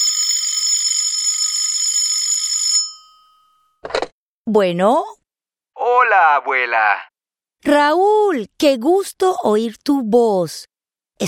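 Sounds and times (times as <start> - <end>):
telephone ringing with bright metallic bell trill: 0.0 - 3.8
speech: 4.5 - 5.2, 6.1 - 11.2.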